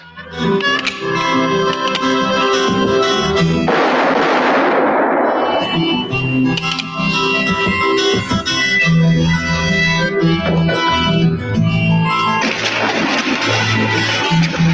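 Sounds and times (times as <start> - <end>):
orchestral music: 0.4 - 9.4, 10.0 - 14.7
single gunshot in a western gunfight: 3.7 - 6.0.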